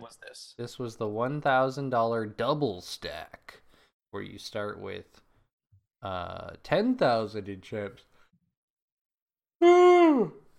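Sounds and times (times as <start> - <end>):
speech: 0.1 - 5.2, 6.0 - 8.1, 9.6 - 10.4
person yawning: 9.6 - 10.5.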